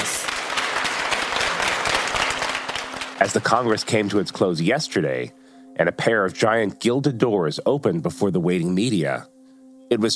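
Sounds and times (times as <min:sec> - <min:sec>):
applause welcoming China's General Secretary and Standing Committee at the Party Congress: 0:00.0 - 0:04.5
speech: 0:03.2 - 0:09.3, 0:09.9 - 0:10.1.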